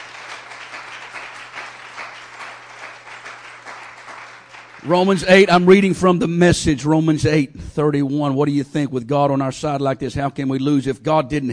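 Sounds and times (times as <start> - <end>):
audience clapping: 0.0 - 5.9
speech: 4.8 - 11.5.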